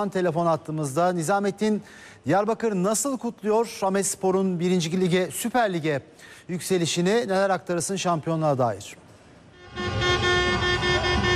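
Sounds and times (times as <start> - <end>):
speech: 0.0 - 9.0
traffic noise in jammed Diyarbakır streets: 9.1 - 11.3
car horns honking in jammed Diyarbakır streets as football fans celebrate: 9.5 - 11.3.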